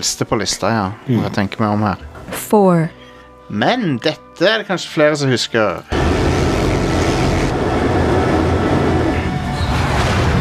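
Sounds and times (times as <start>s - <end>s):
speech: 0.0s - 6.3s
video game jetpack sound: 5.9s - 10.3s.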